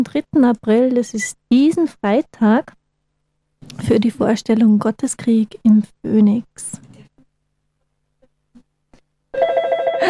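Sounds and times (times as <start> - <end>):
speech: 0.0 - 2.8, 3.6 - 6.9
telephone ringing: 9.3 - 10.0.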